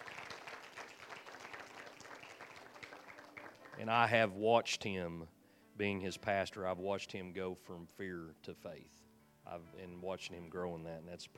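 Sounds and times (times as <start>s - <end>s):
audience applause: 0.0s - 4.1s
speech: 3.8s - 11.3s.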